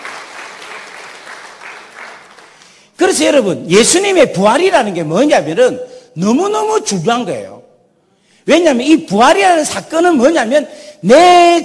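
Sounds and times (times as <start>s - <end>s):
audience applause: 0.0s - 2.8s
speech: 3.0s - 7.6s, 8.5s - 11.6s.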